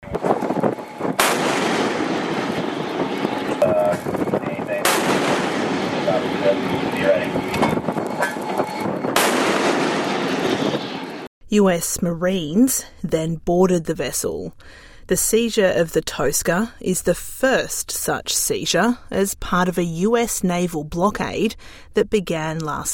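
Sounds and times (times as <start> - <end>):
engine noise: 0.0 - 11.3
wind roaring: 0.0 - 11.3
5-inch naval gun firing rounds: 1.1 - 3.6, 4.2 - 7.7, 9.1 - 11.2
speech: 11.5 - 22.9.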